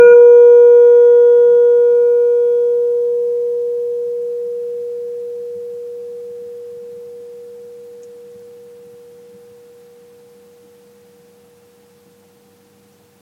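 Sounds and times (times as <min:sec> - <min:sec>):
tuning forks: 0:00.0 - 0:11.5.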